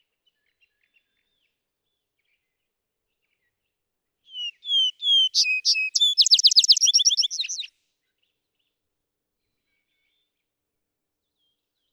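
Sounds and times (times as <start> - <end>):
vesper sparrow singing: 4.3 - 7.7.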